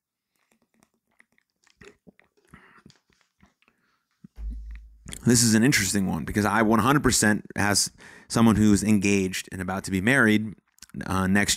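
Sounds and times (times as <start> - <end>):
person sipping a drink of water: 0.3 - 5.1
speech: 5.3 - 11.5.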